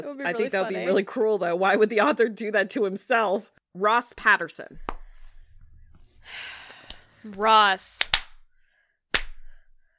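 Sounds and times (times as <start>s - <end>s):
speech: 0.0s - 5.0s, 7.2s - 8.2s
slow hand clapping: 8.0s - 8.4s, 9.1s - 9.5s.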